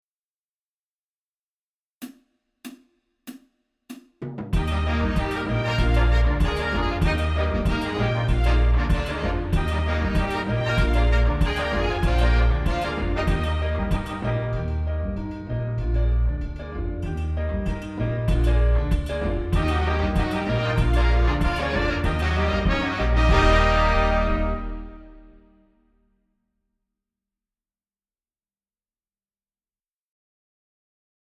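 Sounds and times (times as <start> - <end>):
calypso music: 4.6 - 25.4.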